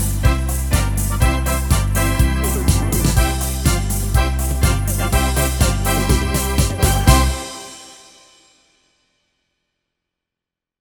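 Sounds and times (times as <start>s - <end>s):
schlager party music: 0.0s - 8.3s.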